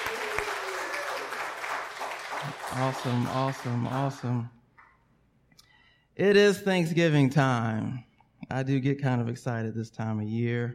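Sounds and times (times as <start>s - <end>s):
audience applause for the praise and worship band: 0.0s - 4.4s
speech: 2.7s - 4.6s, 6.2s - 10.7s.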